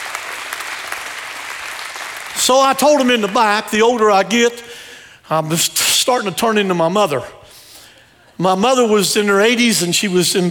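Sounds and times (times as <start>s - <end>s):
audience clapping: 0.0s - 4.1s
speech: 2.4s - 4.7s, 5.3s - 7.4s, 8.4s - 10.4s.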